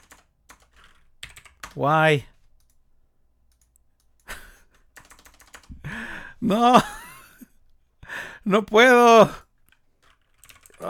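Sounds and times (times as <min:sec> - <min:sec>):
typing on a computer keyboard: 0:00.0 - 0:05.8, 0:09.5 - 0:10.8
speech: 0:01.8 - 0:02.3, 0:06.4 - 0:07.0, 0:08.4 - 0:09.4
laughter: 0:05.8 - 0:07.4.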